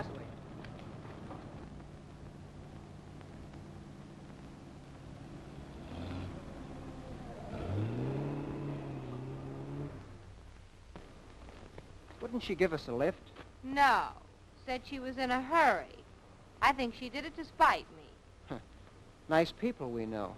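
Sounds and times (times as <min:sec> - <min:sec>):
car driving past: 0:05.5 - 0:10.3
speech: 0:12.3 - 0:16.0, 0:16.6 - 0:18.7, 0:19.3 - 0:20.3.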